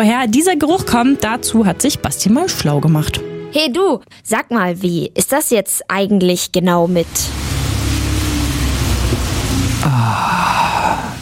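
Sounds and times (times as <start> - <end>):
speech: 0.0 - 7.5
rain falling: 6.9 - 11.2.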